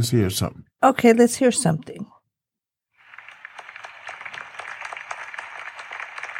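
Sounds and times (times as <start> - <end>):
speech: 0.0 - 2.1
clapping sound effect from effects panel: 3.0 - 6.3.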